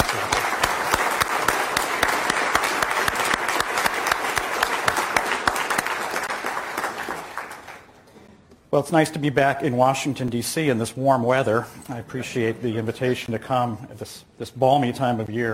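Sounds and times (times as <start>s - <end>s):
crowd applauding: 0.0s - 8.1s
speech: 8.8s - 15.5s.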